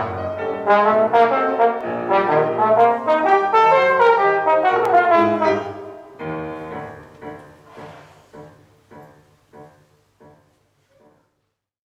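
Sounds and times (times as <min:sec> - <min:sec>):
jazz trombone: 0:00.0 - 0:06.2
jazz piano: 0:00.0 - 0:11.7.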